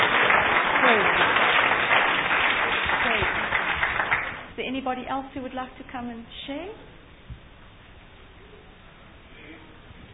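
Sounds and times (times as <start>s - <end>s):
audience clapping hands: 0.0s - 4.5s
speech: 4.7s - 7.0s.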